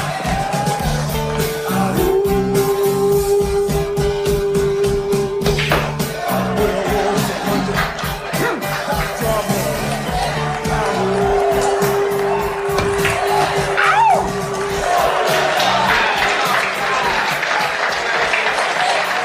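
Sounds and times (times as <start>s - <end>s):
whoops and shouts: 0.0s - 1.0s, 11.0s - 16.1s
crowd clapping and cheering: 0.0s - 19.2s
laughter: 6.2s - 19.2s.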